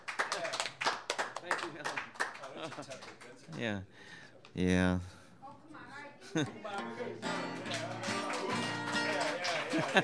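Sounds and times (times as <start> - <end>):
audience applause welcoming a songwriter: 0.0 - 3.7, 7.2 - 10.0
laughter: 2.5 - 3.0, 6.2 - 10.0
speech: 2.6 - 5.2, 6.3 - 7.4, 9.8 - 10.0.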